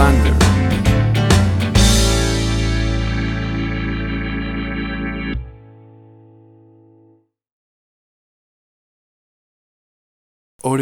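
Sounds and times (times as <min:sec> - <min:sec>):
1950s country boogie woogie music: 0:00.0 - 0:06.8.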